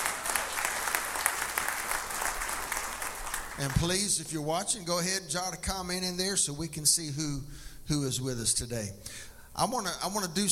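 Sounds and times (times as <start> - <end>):
church congregation at Northview Harvest Ministries applauding: 0.0 - 4.2
speech: 3.6 - 10.5.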